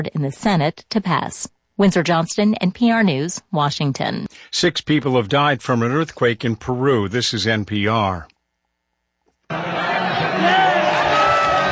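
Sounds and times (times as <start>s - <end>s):
speech: 0.0s - 8.3s
soccer fans cheering: 9.5s - 11.7s.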